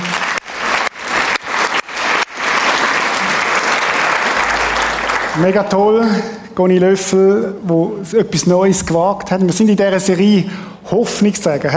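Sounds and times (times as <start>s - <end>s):
audience applause: 0.0s - 5.9s
speech: 5.4s - 11.7s.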